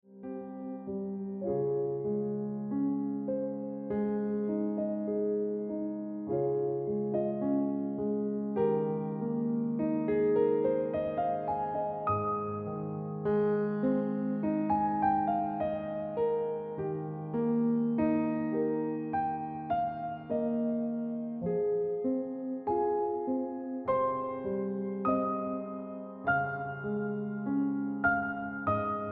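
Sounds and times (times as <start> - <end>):
piano ringtone music: 0.2 - 29.1.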